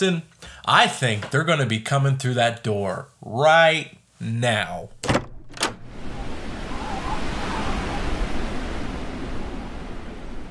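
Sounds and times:
speech: 0:00.0 - 0:05.0
wind blowing: 0:05.3 - 0:10.5.

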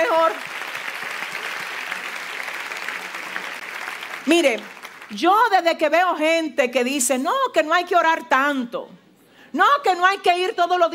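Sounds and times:
audience applause: 0:00.0 - 0:05.1
speech: 0:00.3 - 0:00.6, 0:04.2 - 0:10.9.

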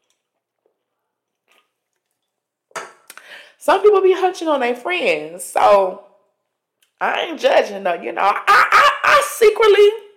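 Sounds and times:
person sipping a drink: 0:00.0 - 0:03.2
speech: 0:03.6 - 0:06.1, 0:07.0 - 0:10.0.

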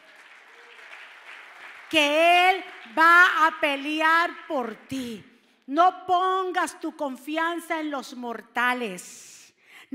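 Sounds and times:
loud applause: 0:00.0 - 0:03.0
speech: 0:01.9 - 0:09.9.

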